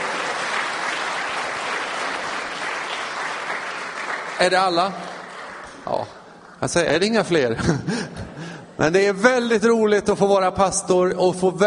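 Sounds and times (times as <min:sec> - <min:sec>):
audience applause: 0:00.0 - 0:06.4
speech: 0:04.4 - 0:05.1, 0:05.8 - 0:11.6
laughter: 0:07.4 - 0:08.6.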